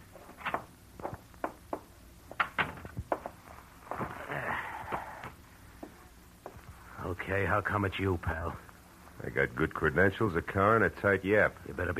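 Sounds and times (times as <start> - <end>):
footsteps: 0.2 - 6.8
speech: 7.3 - 11.9.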